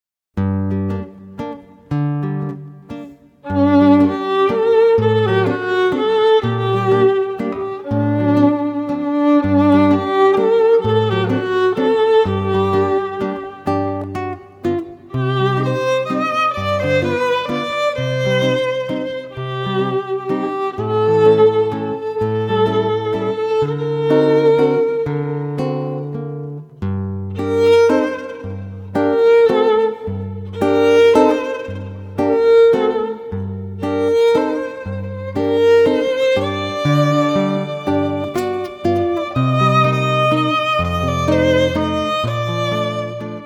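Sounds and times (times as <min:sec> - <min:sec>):
guitar: 0:00.4 - 0:43.4
violin: 0:00.4 - 0:43.4.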